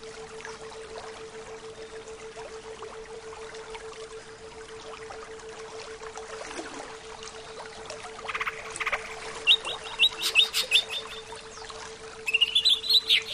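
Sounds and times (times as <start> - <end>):
greater green leafbird song: 8.3 - 13.3.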